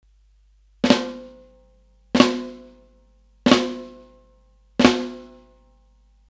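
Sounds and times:
snare drum flams: 0.8s - 1.4s, 2.2s - 2.7s, 4.8s - 5.4s.

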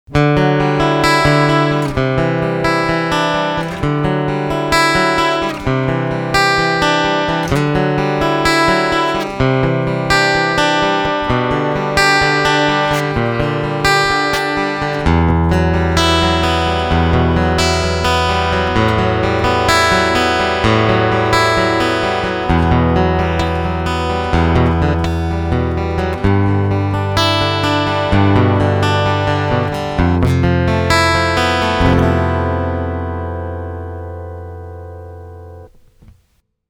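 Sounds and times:
string picking: 0.1s - 36.3s.

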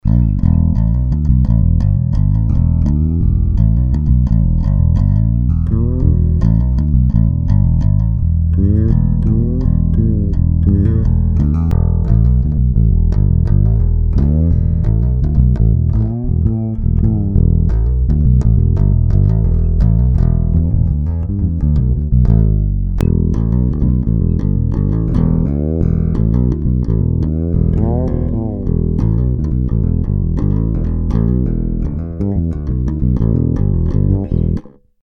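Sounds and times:
round wound bass guitar with EQ bass boost: 0.0s - 35.0s.

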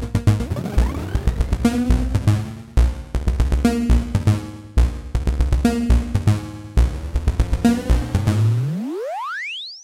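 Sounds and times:
Demora dark energy delay effect: 0.2s - 9.2s.

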